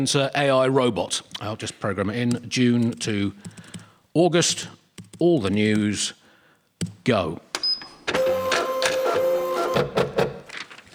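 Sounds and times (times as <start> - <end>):
speech: 0.0 - 3.6, 4.2 - 6.2, 7.1 - 7.4, 9.8 - 10.0
printer beep: 7.7 - 10.5
printer printing a page: 7.9 - 10.9.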